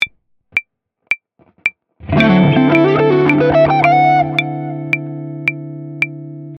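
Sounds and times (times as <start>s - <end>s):
musical lick: 2.0s - 5.6s.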